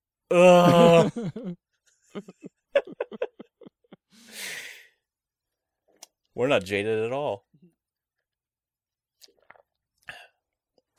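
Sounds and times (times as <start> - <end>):
speech: 0.3 - 1.6, 6.4 - 7.4
laughter: 0.7 - 4.1
two people drinking water at the same time: 9.2 - 10.9.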